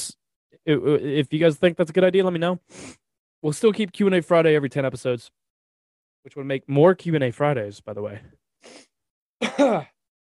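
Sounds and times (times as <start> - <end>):
speech: 0.5 - 5.4, 6.2 - 9.9
cough: 9.4 - 10.0.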